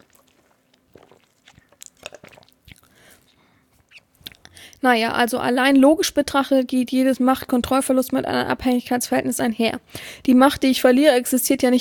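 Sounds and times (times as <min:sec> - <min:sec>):
wet mouth clicks: 0:00.0 - 0:04.7
gulping swallows: 0:00.0 - 0:04.8
person sipping a drink: 0:00.0 - 0:04.8
speech: 0:04.8 - 0:11.7.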